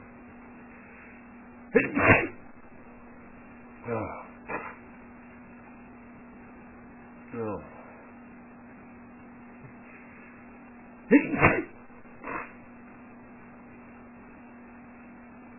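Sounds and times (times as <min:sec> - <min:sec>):
man sneezing: 0:01.7 - 0:02.5, 0:03.9 - 0:04.8, 0:11.1 - 0:12.6.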